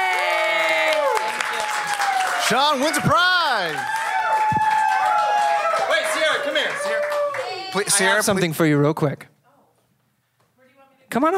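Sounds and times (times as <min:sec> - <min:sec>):
cheers and whoops: 0:00.0 - 0:08.1
audience applause: 0:00.0 - 0:08.4
speech: 0:02.5 - 0:04.6, 0:07.7 - 0:09.3, 0:11.1 - 0:11.3.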